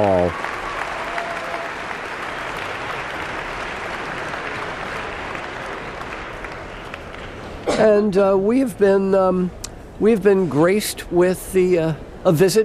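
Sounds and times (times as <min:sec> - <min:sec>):
concert audience applause at Carnegie Hall: 0:00.0 - 0:07.4
speech: 0:07.8 - 0:12.6.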